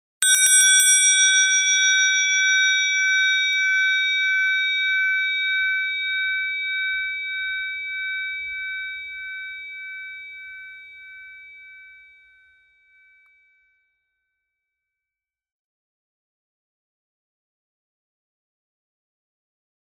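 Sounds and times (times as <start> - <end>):
bell: 0.2 - 14.7.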